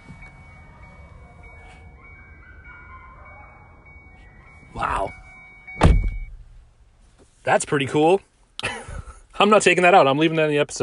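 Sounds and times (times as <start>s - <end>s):
coyotes howling: 0.3s - 5.6s
speech: 4.7s - 5.2s, 7.5s - 8.3s, 9.4s - 10.8s.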